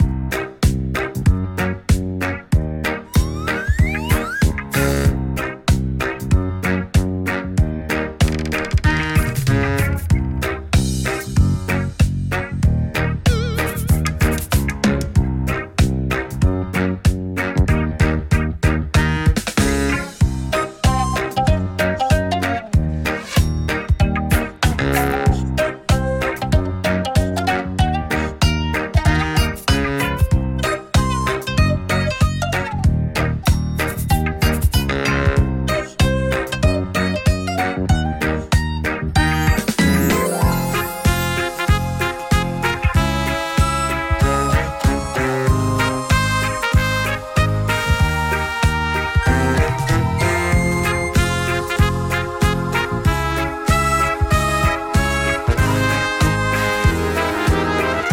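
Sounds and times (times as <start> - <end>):
instrumental music: 0.0 - 58.1.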